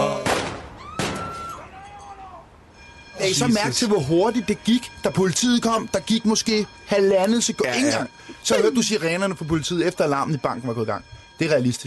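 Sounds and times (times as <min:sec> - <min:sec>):
gunshot: 0:00.2 - 0:01.4
speech: 0:03.3 - 0:11.8.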